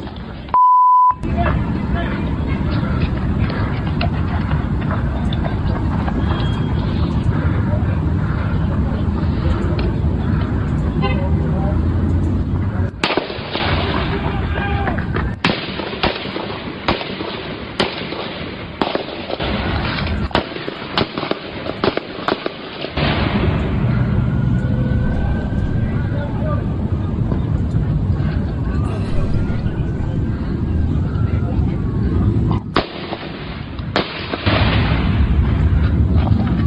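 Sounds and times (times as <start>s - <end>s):
short beep: 0.5s - 1.2s
voices: 1.2s - 34.4s
gunfire in police shooting of a gunman: 13.0s - 14.5s, 15.4s - 24.3s, 32.7s - 35.6s.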